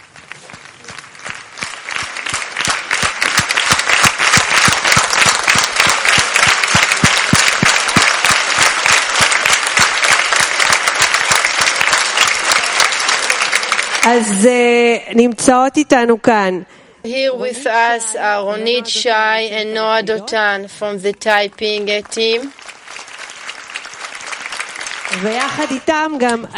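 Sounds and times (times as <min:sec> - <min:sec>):
loud audience applause: 0:00.0 - 0:14.3, 0:21.4 - 0:26.0
speech: 0:14.0 - 0:22.6, 0:25.2 - 0:26.5.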